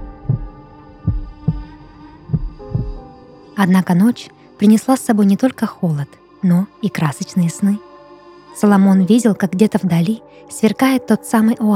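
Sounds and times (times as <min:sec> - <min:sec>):
heartbeat thumping: 0:00.0 - 0:03.0
speech: 0:03.6 - 0:07.9, 0:08.6 - 0:11.7.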